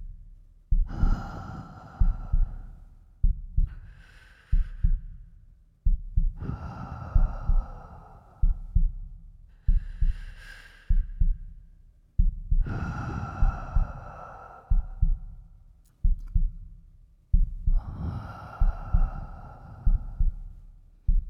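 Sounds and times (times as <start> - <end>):
sleeping breath: 0.8 - 5.4, 6.3 - 11.7, 12.5 - 15.6, 17.5 - 21.2.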